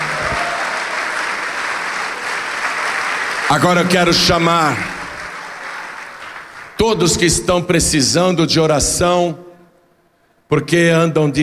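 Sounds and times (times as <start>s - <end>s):
audience applauding: 0.0s - 7.3s
speech: 3.5s - 4.9s, 6.8s - 9.4s, 10.5s - 11.4s.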